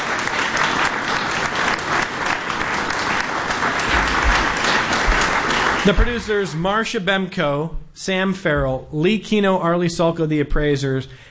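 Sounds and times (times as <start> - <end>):
audience applause at Genesee Country Village and Museum thanking Antiques Roadshow: 0.0 - 6.6
speech: 5.8 - 11.3.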